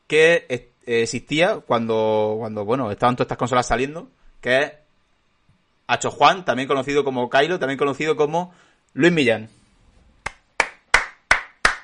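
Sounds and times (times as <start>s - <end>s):
speech: 0.1s - 4.8s, 5.9s - 9.6s
applause: 10.2s - 11.8s.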